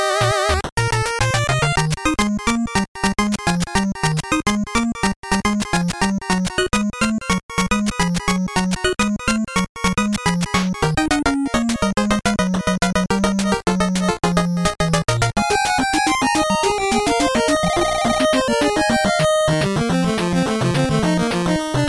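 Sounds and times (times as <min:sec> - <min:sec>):
8-bit music for mobile phone ringtones: 0:00.1 - 0:21.8.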